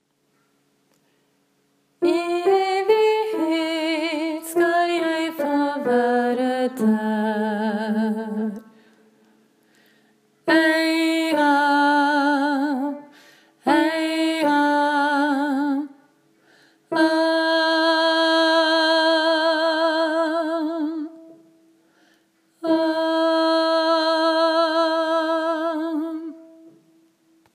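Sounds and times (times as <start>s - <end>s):
soprano voice: 2.0s - 8.9s, 10.4s - 16.1s, 16.9s - 21.5s, 22.6s - 26.8s.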